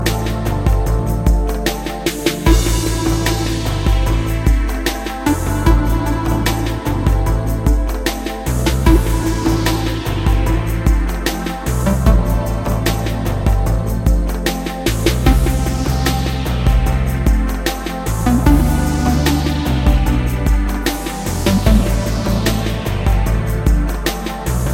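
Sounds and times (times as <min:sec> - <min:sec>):
cyborg chillout lounge music: 0:00.0 - 0:24.7.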